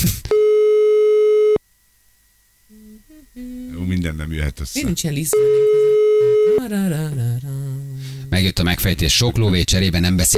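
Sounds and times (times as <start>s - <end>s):
telephone ring tone: 0.4s - 1.6s, 5.4s - 6.6s
speech: 3.9s - 7.6s, 8.3s - 10.3s.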